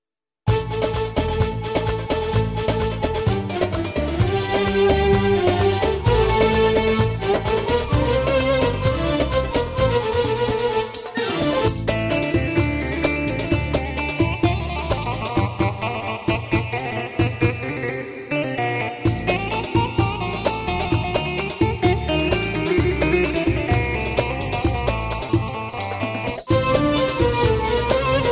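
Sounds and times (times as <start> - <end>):
keyboard music on a PA800: 0.5 - 28.3.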